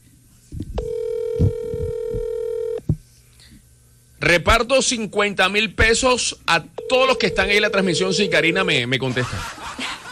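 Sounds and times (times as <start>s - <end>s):
telephone call tone: 0.8s - 2.8s, 6.8s - 8.9s
speech: 4.2s - 9.8s
laughter: 9.0s - 10.0s.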